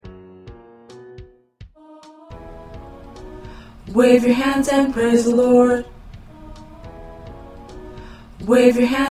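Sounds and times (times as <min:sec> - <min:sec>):
tenor singing: 0:01.8 - 0:09.0.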